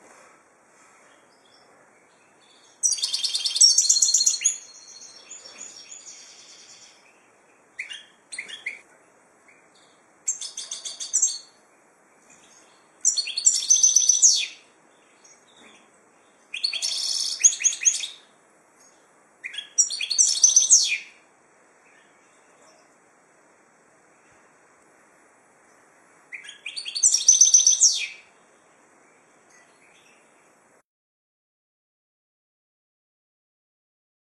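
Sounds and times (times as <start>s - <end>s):
finch singing: 1.0s - 8.8s, 9.4s - 11.6s, 12.2s - 21.2s, 25.7s - 28.3s.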